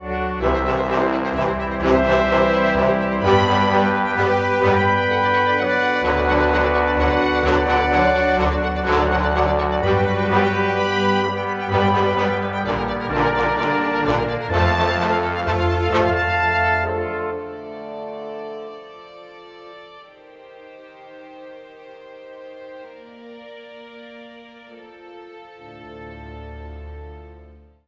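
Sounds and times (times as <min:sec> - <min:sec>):
orchestra: 0:00.0 - 0:27.8.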